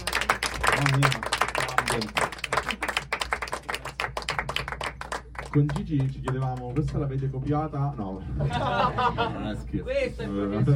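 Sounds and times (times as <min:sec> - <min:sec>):
small group clapping: 0:00.0 - 0:07.3
speech: 0:00.8 - 0:01.3, 0:02.0 - 0:02.3, 0:05.5 - 0:10.7
laughter: 0:08.2 - 0:09.7.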